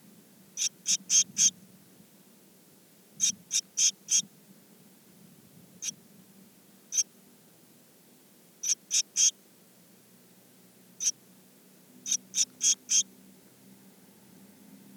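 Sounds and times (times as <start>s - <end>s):
Eurasian blue tit calls: 0.6s - 1.5s, 3.2s - 4.2s, 8.6s - 9.3s, 12.0s - 13.1s
speech: 0.6s - 1.5s.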